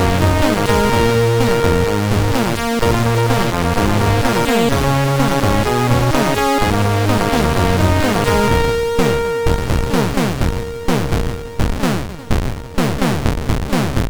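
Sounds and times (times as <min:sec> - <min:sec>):
heavy guitar on MOS6581R3 chip: 0:00.0 - 0:14.0.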